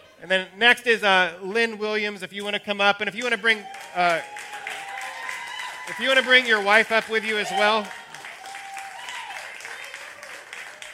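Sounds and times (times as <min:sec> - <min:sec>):
speech: 0:00.2 - 0:04.6, 0:05.9 - 0:08.0
crowd clapping: 0:03.2 - 0:10.9.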